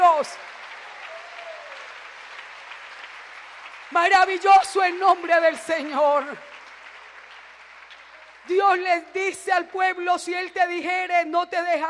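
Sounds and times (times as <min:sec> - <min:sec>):
audience applause: 0:00.0 - 0:09.3
speech: 0:00.2 - 0:00.4, 0:03.9 - 0:06.5, 0:08.5 - 0:11.8.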